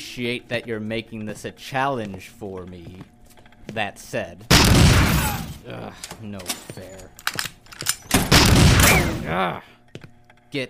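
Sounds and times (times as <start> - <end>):
speech: 0.2 - 10.6
gunshots in an audio drama: 4.5 - 5.6, 8.2 - 9.4
loud dense burst of rapid gunfire in an audio drama: 8.3 - 9.2.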